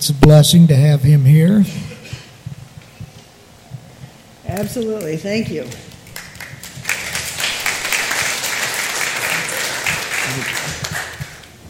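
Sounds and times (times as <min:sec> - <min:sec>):
speech: 0:00.0 - 0:01.9, 0:04.6 - 0:05.9
audience applauding: 0:05.6 - 0:11.6.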